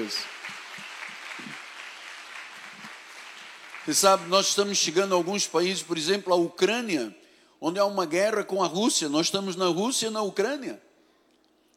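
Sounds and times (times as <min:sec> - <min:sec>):
speech: 0:00.0 - 0:00.4, 0:03.9 - 0:10.8
applause: 0:00.0 - 0:05.3.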